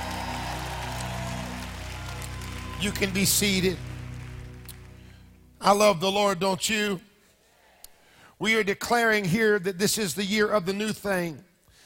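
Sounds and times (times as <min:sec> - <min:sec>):
audience clapping and roaring: 0:00.0 - 0:05.4
speech: 0:02.8 - 0:03.9, 0:05.6 - 0:07.1, 0:08.4 - 0:11.5.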